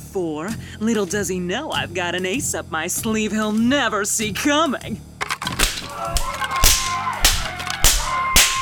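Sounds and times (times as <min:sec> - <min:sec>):
speech: 0:00.2 - 0:05.1
leather blackjack whacking someone's head: 0:05.6 - 0:08.5.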